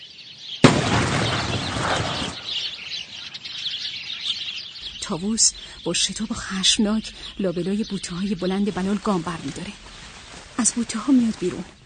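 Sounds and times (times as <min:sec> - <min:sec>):
gunshot: 0:00.6 - 0:02.5
sparrows flying off: 0:00.6 - 0:11.8
speech: 0:05.1 - 0:10.0, 0:10.6 - 0:11.8.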